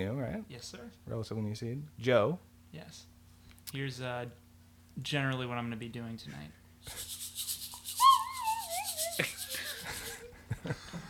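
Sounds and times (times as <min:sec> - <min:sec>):
speech: 0:00.0 - 0:04.4, 0:05.0 - 0:07.2, 0:10.6 - 0:11.0
shaker rattling in a steady quick rhythm: 0:06.9 - 0:10.3
slide whistle swooping down in a wobbly glide: 0:07.0 - 0:09.9.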